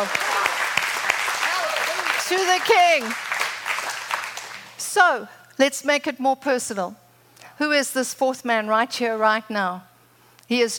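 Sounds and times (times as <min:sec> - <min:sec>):
audience cheering: 0:00.0 - 0:04.7
speech: 0:02.3 - 0:03.2, 0:05.0 - 0:07.0, 0:07.6 - 0:09.9, 0:10.5 - 0:10.7.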